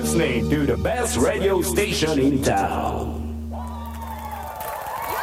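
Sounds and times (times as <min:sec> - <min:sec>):
speech: 0:00.2 - 0:03.1
applause and cheering sound effect: 0:03.5 - 0:05.1.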